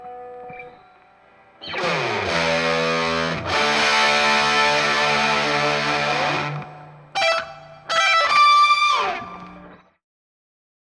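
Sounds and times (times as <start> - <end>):
solo with double track style delay: 1.6 - 9.3.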